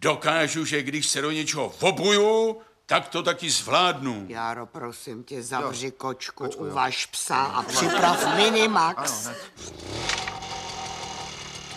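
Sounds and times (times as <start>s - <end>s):
speech: 0.0s - 10.1s
laughter: 7.6s - 9.6s
lawn mower engine starting: 9.6s - 11.7s.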